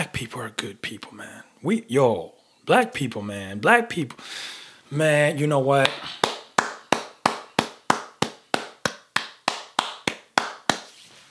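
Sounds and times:
speech: 0.2 - 6.3
person clapping hands: 5.8 - 11.0.

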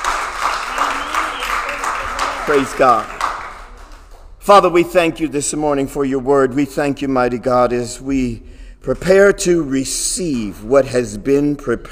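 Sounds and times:
audience clapping: 0.0 - 4.4
speech: 2.5 - 3.2, 4.5 - 11.9.

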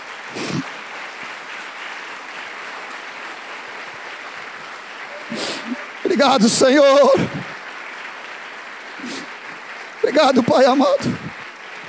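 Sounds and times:
audience applause: 0.0 - 11.8
speech: 6.2 - 7.4, 10.2 - 11.2.

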